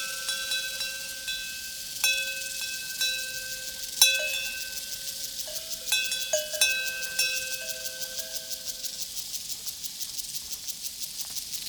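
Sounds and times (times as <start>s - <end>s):
cowbells on a prairie: 0.0s - 9.3s
crickets chirping on a prairie: 0.0s - 9.9s.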